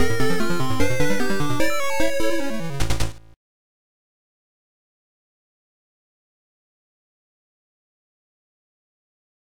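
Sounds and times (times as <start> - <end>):
game over jingle: 0.0 - 3.3.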